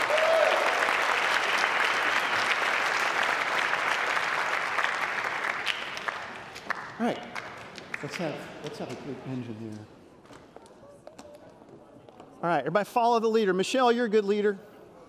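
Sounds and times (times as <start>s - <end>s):
audience applause: 0.0s - 8.4s
speech: 7.0s - 7.3s, 8.0s - 10.0s, 12.4s - 14.7s.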